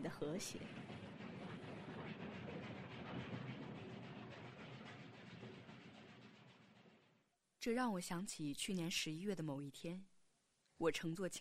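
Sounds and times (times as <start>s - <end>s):
speech: 0.0s - 1.1s, 7.6s - 10.1s, 10.8s - 11.3s
train wheels clattering on rails at night: 0.4s - 6.8s.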